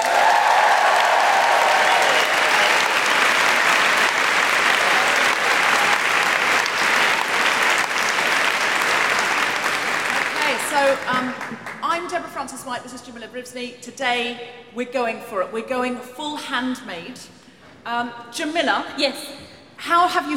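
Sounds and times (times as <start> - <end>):
audience whooping: 0.0 - 7.2
audience applause: 0.0 - 11.8
speech: 12.5 - 20.3.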